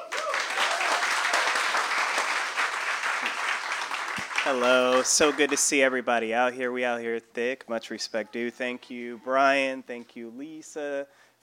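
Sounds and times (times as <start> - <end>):
audience applause: 0.0 - 5.9
speech: 4.4 - 11.4.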